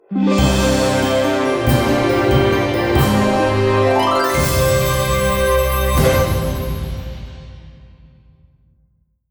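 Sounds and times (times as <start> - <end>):
victory jingle: 0.2 - 7.6.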